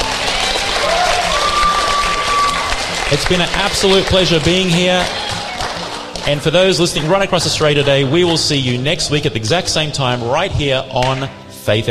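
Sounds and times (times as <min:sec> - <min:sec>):
studio audience round of applause: 0:00.0 - 0:09.1
speech: 0:03.1 - 0:05.2, 0:06.3 - 0:11.8.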